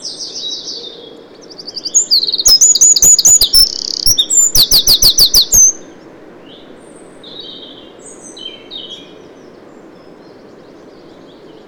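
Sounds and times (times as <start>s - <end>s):
Eurasian wren song: 1.6s - 5.9s.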